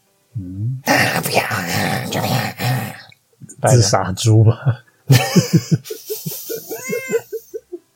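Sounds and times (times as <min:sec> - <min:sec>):
speech: 0:00.4 - 0:02.6, 0:03.6 - 0:06.1
laughter: 0:05.1 - 0:07.9
cat meowing: 0:06.6 - 0:07.6.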